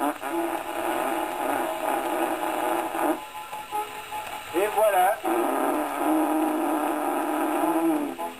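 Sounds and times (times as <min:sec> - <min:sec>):
buzzy fart sound mimicking a giraffe standing up: 0:00.0 - 0:03.3, 0:05.2 - 0:08.3.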